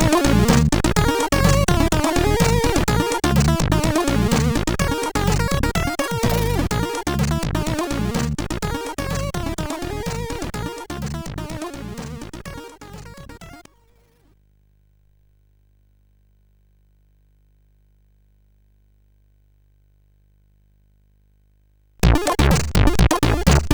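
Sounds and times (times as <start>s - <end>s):
chiptune jazz on a CSG8580R5 SID chip: 0.0s - 13.7s, 22.0s - 23.7s.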